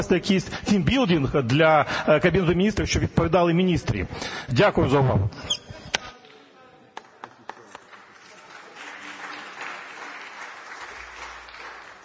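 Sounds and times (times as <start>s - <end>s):
speech: 0.0s - 5.6s
applause in the hall: 7.2s - 12.0s.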